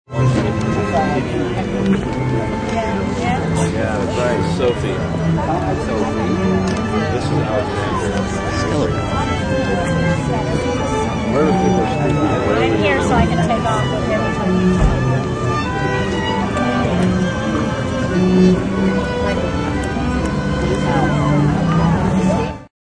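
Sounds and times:
crowds peacefully milling outside at a wedding ceremony: 0.1s - 22.7s
string quartet playing at a wedding ceremony: 0.1s - 22.7s.

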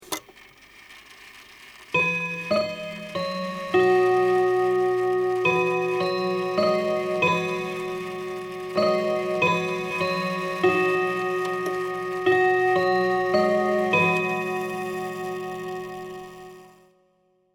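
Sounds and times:
old chime clock: 1.9s - 16.8s.

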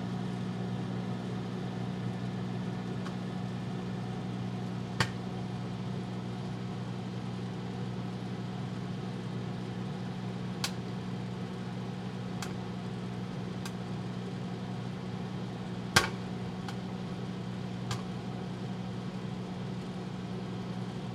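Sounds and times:
household microwave cooking popcorn: 0.0s - 21.1s
popcorn popping in a microwave: 4.9s - 5.4s, 10.6s - 11.0s, 12.3s - 12.7s, 13.5s - 13.9s, 15.9s - 16.9s, 17.8s - 18.3s.

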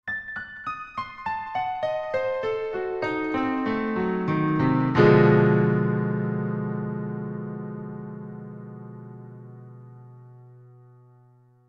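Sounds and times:
ominous descending diminished piano chord: 1.0s - 11.6s.

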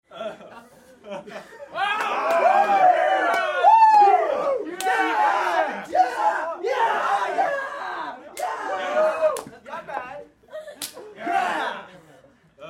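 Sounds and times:
laughter: 0.1s - 2.8s, 9.8s - 12.4s
crowd of teen boys at a party exclaiming whoa: 1.8s - 9.4s.

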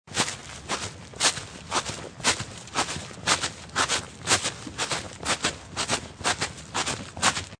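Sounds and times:
skipping footsteps through rustling fallen leaves: 0.1s - 7.5s.

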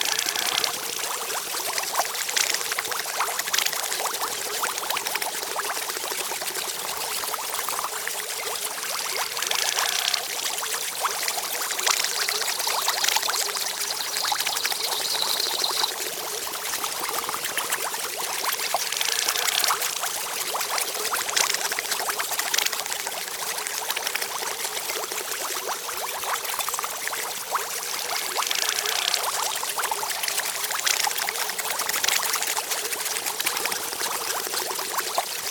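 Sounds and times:
bubbles in a steampunk laboratory: 0.0s - 35.4s.

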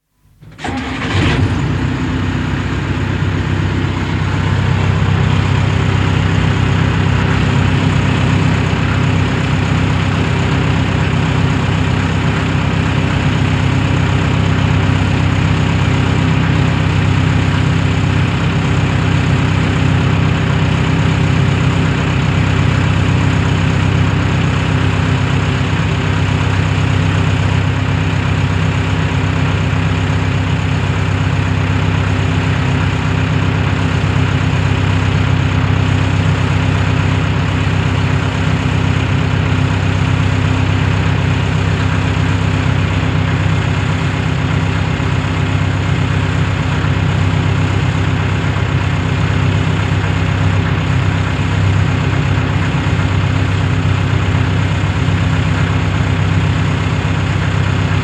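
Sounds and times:
2 ton diesel truck engine starting, idling and switching off: 0.4s - 58.0s.

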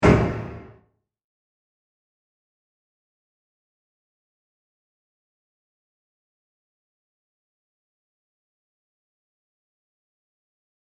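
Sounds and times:
horror trapdoor closing: 0.0s - 0.8s.

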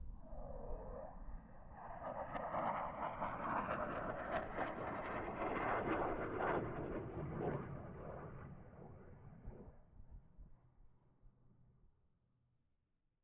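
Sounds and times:
FA-18 Hornet aircraft passing: 0.2s - 9.7s.

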